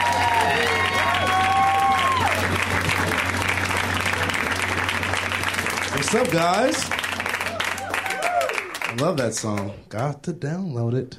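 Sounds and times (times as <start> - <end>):
audience applauding and cheering for a comedian: 0.0 - 9.8
speech: 6.1 - 7.0, 9.0 - 11.1.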